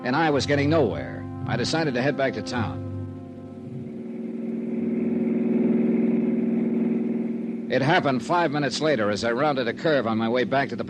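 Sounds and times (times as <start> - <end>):
speech: 0.0 - 2.9, 7.7 - 10.8
car engine roaring as it speeds away: 2.5 - 10.8.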